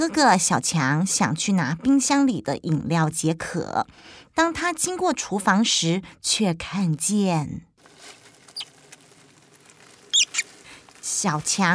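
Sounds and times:
speech: 0.0s - 7.7s, 11.2s - 11.7s
mice scurrying in a kitchen: 7.8s - 11.7s
mouse squeaks: 8.4s - 10.6s.

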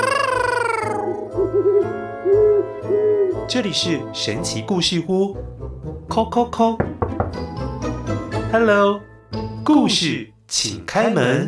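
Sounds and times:
owl hooting: 0.0s - 3.6s
speech: 3.5s - 7.7s, 8.5s - 11.4s.

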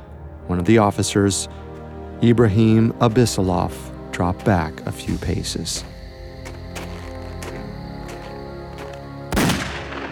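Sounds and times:
speech: 0.5s - 6.0s
gunshot: 9.3s - 10.1s.

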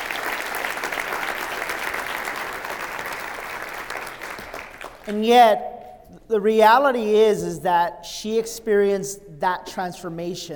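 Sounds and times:
audience applause: 0.0s - 5.1s
speech: 5.0s - 5.7s, 6.3s - 10.5s.

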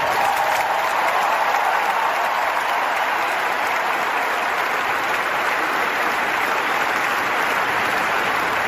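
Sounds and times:
large arena crowd applauding and cheering: 0.0s - 8.6s.

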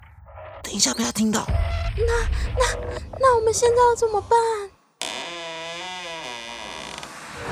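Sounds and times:
speech: 0.7s - 4.8s
door creaking open: 5.0s - 7.4s.

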